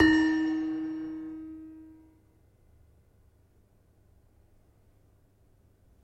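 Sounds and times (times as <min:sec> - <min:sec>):
demung gamelan metallophone: 0:00.0 - 0:01.9.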